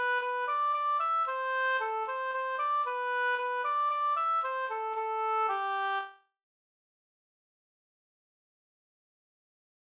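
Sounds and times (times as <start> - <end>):
slängpolska folk dance tune: 0.0 - 6.1.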